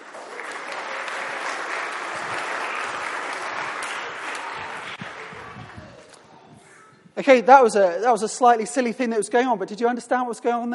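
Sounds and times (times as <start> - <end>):
audience applause: 0.0 - 6.0
speech: 7.2 - 10.7.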